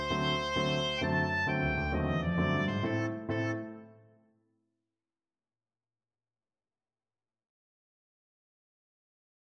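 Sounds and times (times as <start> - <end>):
oboe: 0.0 - 3.9.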